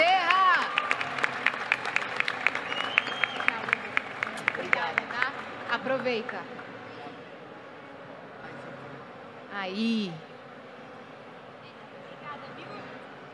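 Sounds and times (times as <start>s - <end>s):
audience applause: 0.2s - 6.3s
speech: 5.9s - 6.6s, 9.6s - 10.3s.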